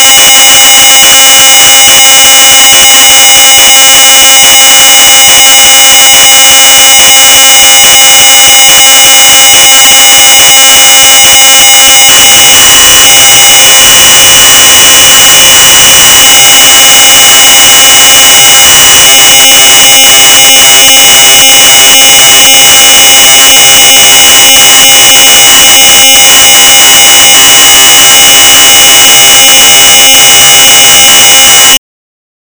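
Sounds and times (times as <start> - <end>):
3600 baud modem data tones: 0.0 - 31.8.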